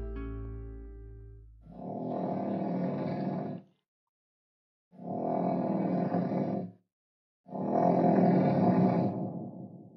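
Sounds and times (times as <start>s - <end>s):
snoring: 1.7s - 3.7s, 5.0s - 6.8s, 7.5s - 9.9s.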